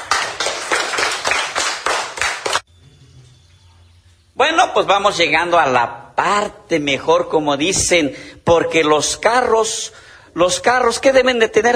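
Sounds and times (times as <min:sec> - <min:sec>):
rhythmic audience applause: 0:00.0 - 0:02.7
speech: 0:04.6 - 0:11.7.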